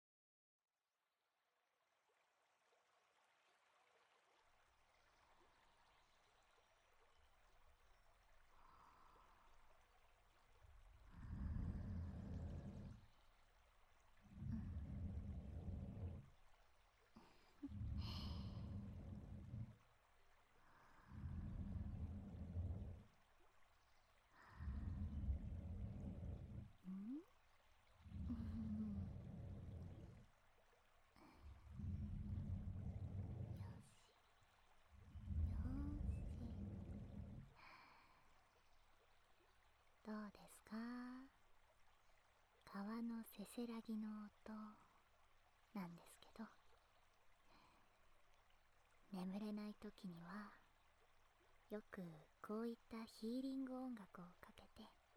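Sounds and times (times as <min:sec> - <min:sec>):
babbling brook: 0:02.1 - 0:55.1
whispering: 0:11.0 - 0:13.1, 0:14.3 - 0:16.4, 0:17.2 - 0:19.8, 0:20.8 - 0:23.1, 0:24.4 - 0:27.3, 0:28.0 - 0:30.3, 0:31.2 - 0:34.2, 0:35.0 - 0:37.8, 0:40.1 - 0:41.4, 0:42.7 - 0:44.9, 0:45.8 - 0:46.6, 0:49.1 - 0:50.7, 0:51.7 - 0:55.0.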